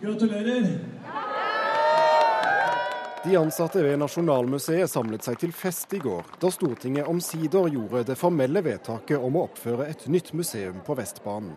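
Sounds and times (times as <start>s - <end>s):
speech: 0.0s - 1.3s, 3.2s - 11.5s
museum staff cheering and whooping: 1.1s - 4.2s.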